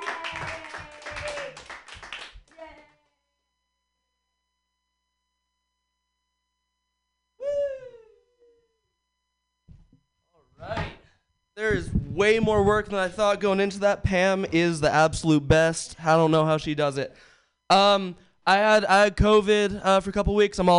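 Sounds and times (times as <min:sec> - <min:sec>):
audience clapping for a comedian: 0:00.0 - 0:02.9
speech: 0:11.7 - 0:20.7.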